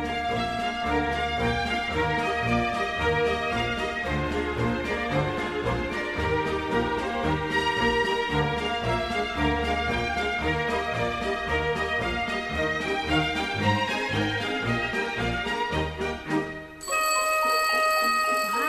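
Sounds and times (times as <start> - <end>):
busy orchestral music: 0.0 - 18.6
clock bell ringing: 16.8 - 18.6.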